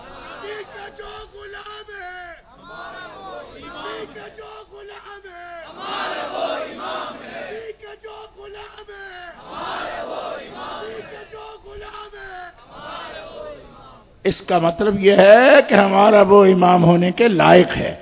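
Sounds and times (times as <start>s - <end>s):
large crowd chanting loudly: 0.0s - 14.2s
speech: 0.6s - 11.3s, 14.3s - 18.0s.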